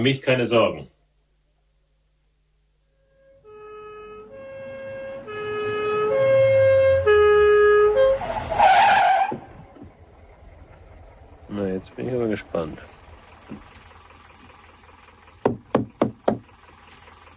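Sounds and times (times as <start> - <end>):
speech: 0.0 - 1.0, 11.5 - 13.7
patrol car engine revving as it accelerates through gears: 3.0 - 17.3
patrol car tire squeal: 3.2 - 11.2.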